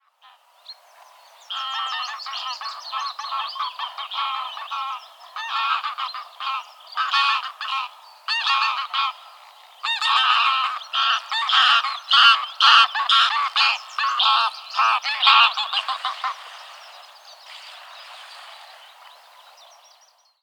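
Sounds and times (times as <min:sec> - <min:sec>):
grey goose calling: 0:01.5 - 0:09.2, 0:09.8 - 0:16.6.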